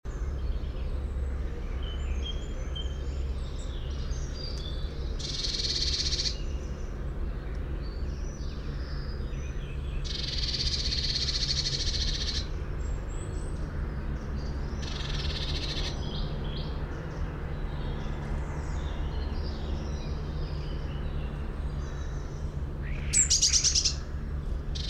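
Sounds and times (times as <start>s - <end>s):
small birds twittering: 0.1s - 24.8s
Eurasian blue tit churring scold calls: 5.2s - 6.5s, 10.0s - 12.5s, 14.8s - 16.0s, 22.8s - 24.1s.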